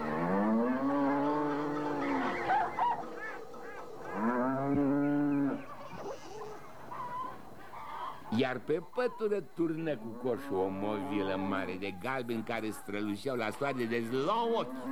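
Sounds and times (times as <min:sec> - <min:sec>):
cattle mooing: 0:00.0 - 0:02.7, 0:04.1 - 0:05.6
farmyard fowl calling: 0:00.0 - 0:14.9
geese honking: 0:00.0 - 0:14.9
speech: 0:08.4 - 0:14.9.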